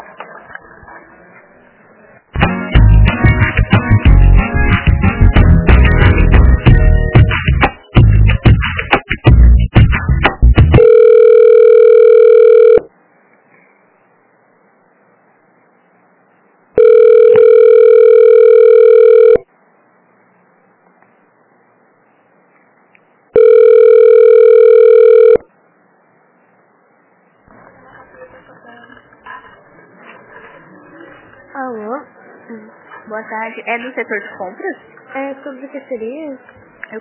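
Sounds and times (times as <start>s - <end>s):
hold music on a phone line: 2.4s - 12.9s, 16.8s - 19.4s, 23.4s - 25.4s
buzzing telephone ringback tone during a call transfer: 10.8s - 12.9s, 16.8s - 19.5s, 23.4s - 25.4s
speech: 33.6s - 36.9s.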